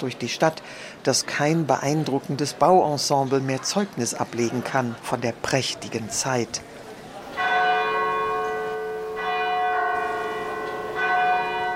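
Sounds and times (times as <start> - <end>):
speech: 0.0 - 6.7
church bells ringing: 7.4 - 11.7.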